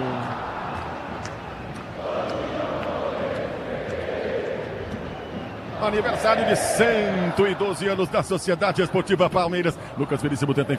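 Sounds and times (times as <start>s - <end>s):
large crowd of football supporters chanting and singing in stadium: 0.0s - 8.1s
speech: 5.8s - 10.7s.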